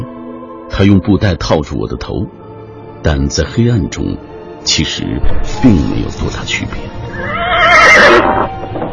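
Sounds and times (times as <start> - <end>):
speech: 0.8 - 2.4, 3.0 - 8.8
horse whinnying: 7.1 - 8.8.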